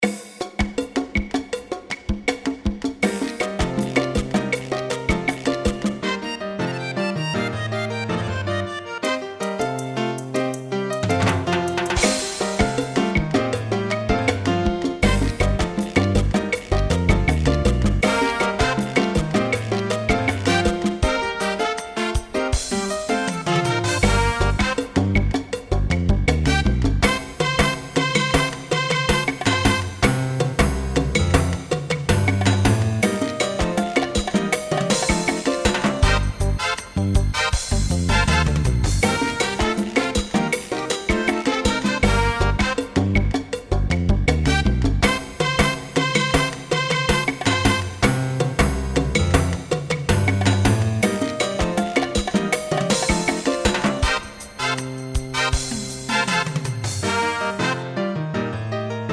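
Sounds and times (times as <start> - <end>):
salsa music: 0.0 - 59.1.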